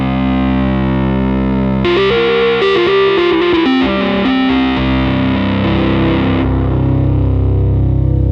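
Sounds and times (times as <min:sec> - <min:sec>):
Rhodes electric piano through two stacked distortion pedals at high gain: 0:00.0 - 0:08.3.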